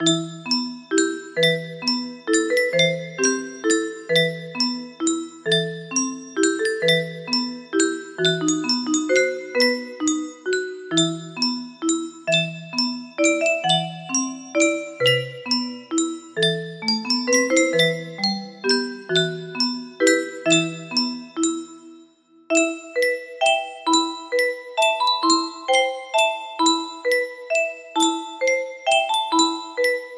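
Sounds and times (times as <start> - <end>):
music box: 0.0 - 30.1.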